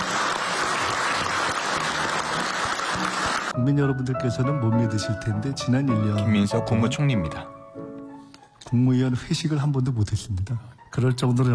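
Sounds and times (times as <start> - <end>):
room full of people applauding: 0.0 - 3.6
speech: 3.6 - 7.6, 8.7 - 11.5.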